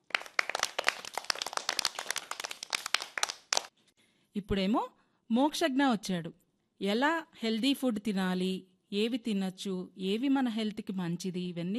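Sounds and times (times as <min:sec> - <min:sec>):
audience clapping after a child's talk on saving water: 0:00.0 - 0:03.7
speech: 0:04.4 - 0:11.7.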